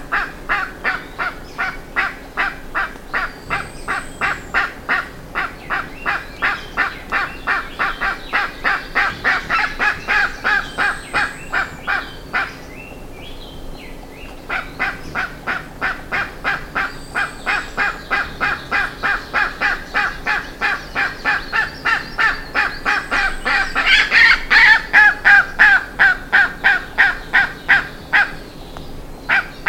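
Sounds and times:
bird honking calls: 0:00.0 - 0:12.6, 0:14.4 - 0:28.4, 0:29.3 - 0:29.6.

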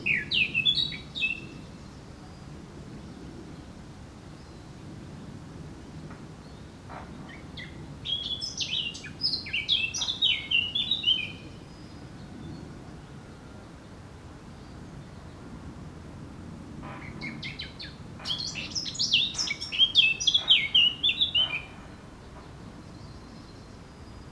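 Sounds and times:
Eurasian blackcap singing: 0:00.1 - 0:01.6, 0:07.6 - 0:11.5, 0:17.2 - 0:21.8.

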